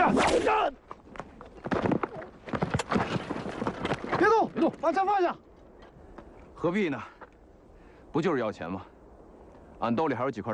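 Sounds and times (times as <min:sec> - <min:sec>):
horse hooves galloping toward a bandit ambush: 0:00.8 - 0:05.3
speech: 0:04.5 - 0:05.5, 0:06.6 - 0:07.2, 0:08.1 - 0:08.9, 0:09.8 - 0:10.5.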